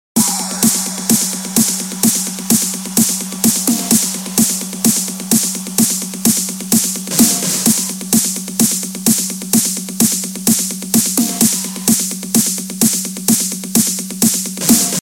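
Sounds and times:
trance music: 0.2s - 14.9s.

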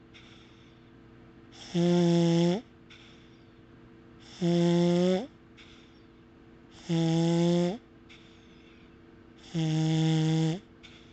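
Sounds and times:
snoring: 1.6s - 2.7s, 4.3s - 5.3s, 6.8s - 7.8s, 9.4s - 10.7s.

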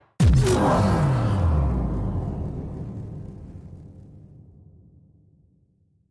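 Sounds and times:
impact shutdown: 0.2s - 4.9s.

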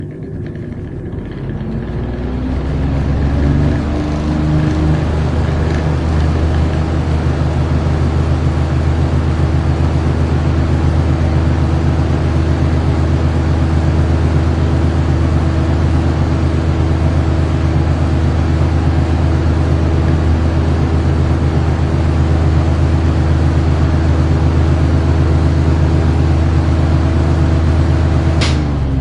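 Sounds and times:
large fan: 0.0s - 29.0s.

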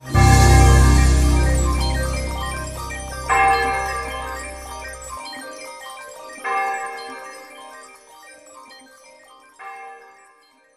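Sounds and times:
twinkling music: 0.0s - 6.4s.

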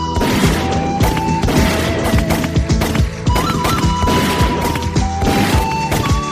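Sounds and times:
gunshot: 0.2s - 6.2s.

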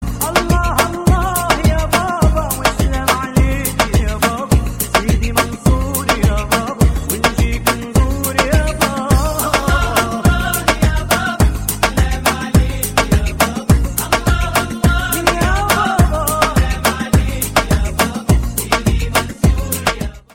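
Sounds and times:
Turkish rhythm music: 0.0s - 20.3s.

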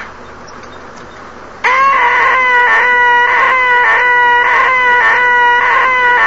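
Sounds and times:
annoying sound: 1.6s - 6.2s.

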